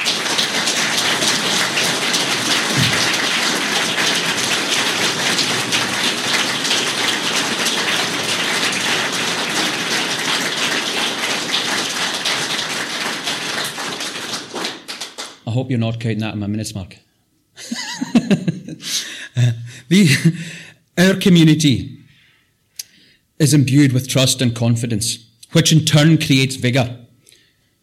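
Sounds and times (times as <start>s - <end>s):
audience applause: 0.0s - 15.4s
speech: 15.7s - 17.1s, 19.9s - 22.0s, 23.4s - 27.0s
laughter: 17.6s - 20.4s.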